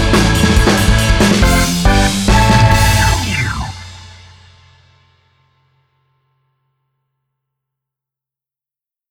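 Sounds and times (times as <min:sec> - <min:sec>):
rock music: 0:00.0 - 0:04.6.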